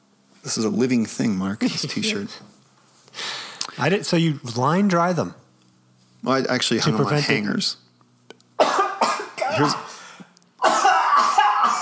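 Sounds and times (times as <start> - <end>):
speech: 0.4 - 2.6, 3.8 - 5.4, 6.2 - 7.8, 9.6 - 9.8
person coughing from a tickly throat: 8.6 - 11.7.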